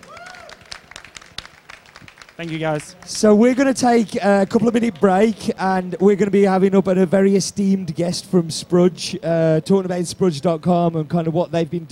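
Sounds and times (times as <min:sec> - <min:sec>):
audience applause: 0:00.0 - 0:03.7
speech: 0:02.4 - 0:11.8.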